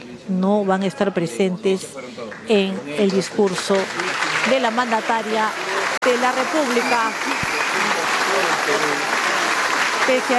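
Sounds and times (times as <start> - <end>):
speech: 0.2 - 7.5, 10.1 - 10.3
applause in a parliament chamber: 2.3 - 10.3.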